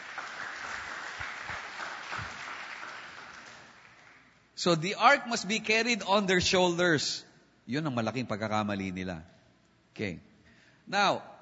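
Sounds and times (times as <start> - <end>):
church congregation applauding: 0.0 - 4.6
speech: 4.6 - 9.3, 10.0 - 10.3, 10.9 - 11.3.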